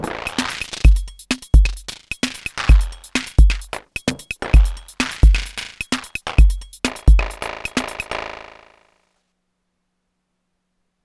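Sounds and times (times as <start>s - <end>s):
Volca Beats drum machine beats: 0.0s - 8.6s.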